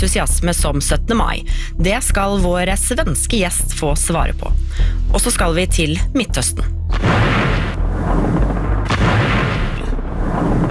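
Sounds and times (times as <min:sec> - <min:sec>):
speech: 0:00.0 - 0:07.2
bombing explosions from an air raid: 0:06.9 - 0:10.6.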